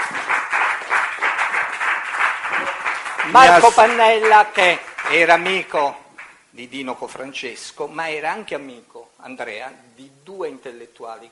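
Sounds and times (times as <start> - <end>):
audience applause: 0.0 - 6.3
speech: 3.3 - 6.0, 6.6 - 11.3.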